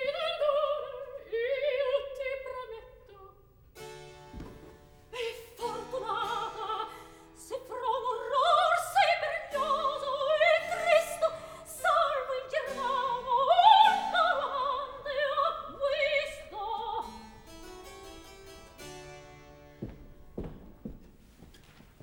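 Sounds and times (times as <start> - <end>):
operatic recitative from a third act: 0.0 - 3.4, 5.1 - 17.3.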